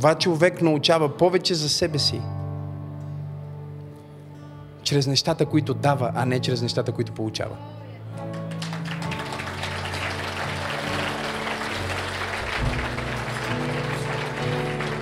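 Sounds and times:
speech: 0.0s - 2.4s, 4.9s - 8.3s
audience applause: 8.3s - 14.9s.

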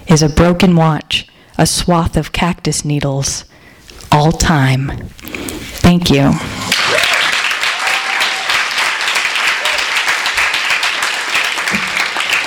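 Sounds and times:
speech: 0.1s - 6.8s
faint voices and cheers: 6.7s - 10.1s
audience applause after a reading: 6.7s - 12.4s.

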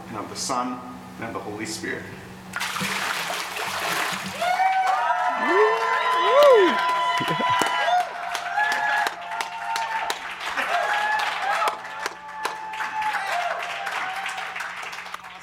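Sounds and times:
speech: 0.1s - 3.1s
watery splash: 2.6s - 4.4s
audience cheering with whoops and shouts: 4.3s - 15.1s.

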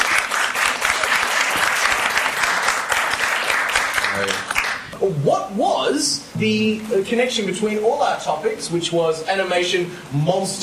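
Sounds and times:
crowd applauding: 0.0s - 4.9s
speech: 4.2s - 10.6s.

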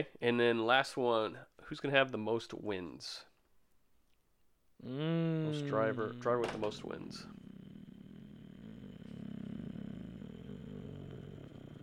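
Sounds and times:
speech: 0.0s - 3.3s, 4.8s - 7.5s
voice imitating car engine revving: 4.8s - 11.8s.

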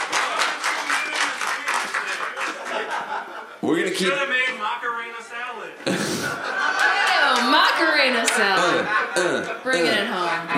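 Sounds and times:
crowd applause: 0.0s - 3.4s, 6.3s - 8.7s
laughter: 0.3s - 4.2s, 5.8s - 10.5s
speech: 3.6s - 6.7s, 7.3s - 10.5s.

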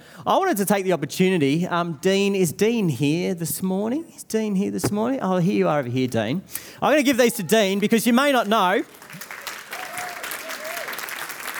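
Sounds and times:
speech: 0.2s - 9.4s
audience clapping: 8.2s - 11.5s.

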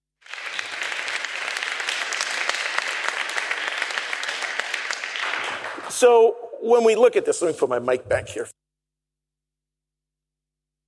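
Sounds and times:
audience round of applause: 0.2s - 6.3s
speech: 6.0s - 8.6s.

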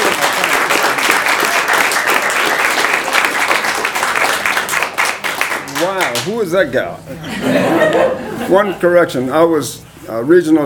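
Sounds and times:
audience applause: 0.0s - 6.3s
speech: 6.2s - 10.6s
laughter: 7.1s - 8.9s.

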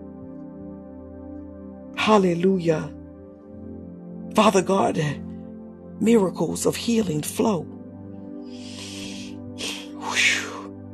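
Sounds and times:
speech: 2.1s - 3.0s, 4.4s - 5.3s, 6.0s - 7.8s
preacher taking sharp breaths through the nose during a healing prayer: 8.5s - 10.0s.

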